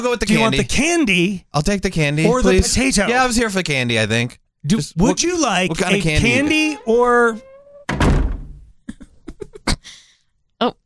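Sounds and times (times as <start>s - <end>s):
speech: 0.0s - 7.5s, 10.6s - 10.8s
door opening and closing: 6.0s - 8.8s.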